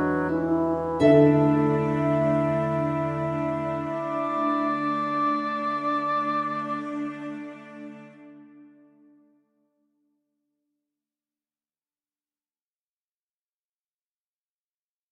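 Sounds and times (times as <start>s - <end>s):
gentle music at 106 bpm: 0.0s - 9.6s.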